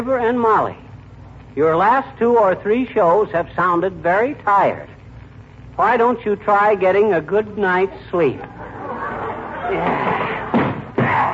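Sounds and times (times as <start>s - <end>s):
speech: 0.0s - 0.8s, 1.6s - 4.9s, 5.8s - 8.8s, 9.7s - 10.4s
laughter: 8.3s - 10.7s
foot kicking a wooden cedar chair: 9.9s - 11.3s.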